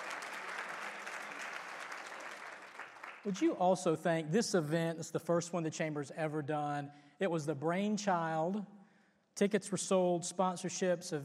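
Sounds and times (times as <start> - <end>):
audience clapping: 0.0 - 3.8
speech: 3.2 - 8.8, 9.4 - 11.2.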